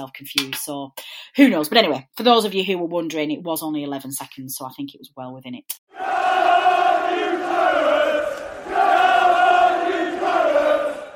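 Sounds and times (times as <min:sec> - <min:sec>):
speech: 0:00.0 - 0:09.4
packed pub crowd roaring after a football win at the Vintage Claret: 0:05.9 - 0:11.1.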